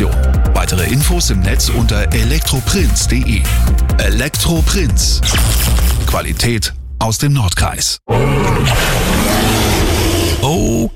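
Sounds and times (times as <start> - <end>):
speech: 0.8 - 9.5, 10.4 - 10.9
dinosaur roar in an ad for Zoo Osnabrück dinosaur exhibit: 8.1 - 10.9.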